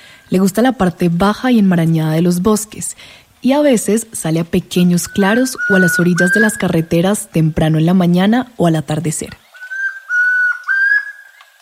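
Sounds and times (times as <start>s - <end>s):
speech: 0.3s - 9.4s
chestnut-crowned antpitta singing whistled notes: 4.9s - 6.9s, 9.4s - 11.6s.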